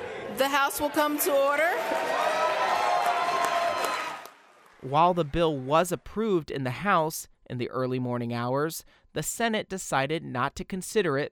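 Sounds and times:
speech: 0.3 - 2.3, 4.8 - 11.3
applause in the Ohio House chamber: 1.0 - 6.1.

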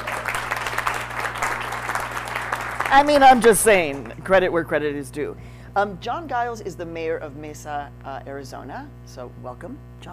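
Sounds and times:
audience clapping for a speaker: 0.0 - 4.2
speech: 2.9 - 10.1.

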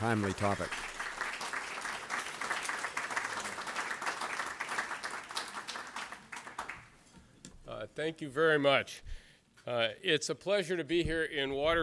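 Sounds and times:
speech: 0.0 - 0.9, 8.0 - 11.8
audience applause welcoming a speaker to a lecture on U.S. foreign policy in Waterville, Maine: 0.0 - 6.9.

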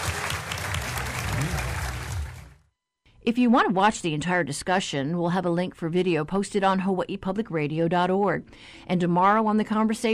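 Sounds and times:
audience applause for panelists: 0.0 - 2.6
speech: 3.3 - 10.1.

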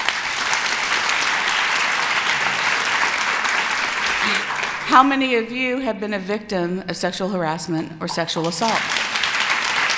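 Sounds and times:
audience clapping: 0.0 - 5.0, 8.4 - 9.9
speech: 4.2 - 9.0.

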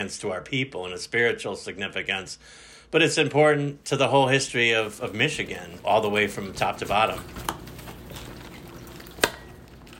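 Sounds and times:
speech: 0.0 - 7.6
Manoomin and venison casserole simmering in a kitchen: 4.5 - 9.9.

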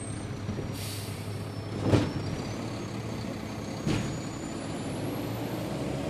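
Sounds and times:
trash truck engine rumbling in the distance: 0.0 - 6.0
truck air brake hisses: 0.8 - 1.4.

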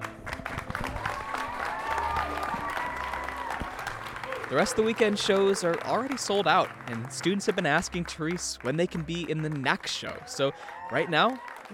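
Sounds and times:
audience clapping after theater performance: 0.0 - 11.7
faint music: 0.0 - 11.7
scattered cheers: 0.8 - 7.9, 10.0 - 11.7
speech: 4.5 - 11.7.

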